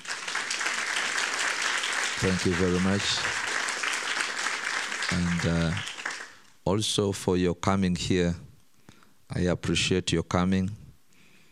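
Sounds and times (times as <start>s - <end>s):
audience clapping hands: 0.0s - 6.5s
speech: 2.2s - 3.4s, 5.1s - 5.9s, 6.6s - 8.5s, 9.3s - 10.8s.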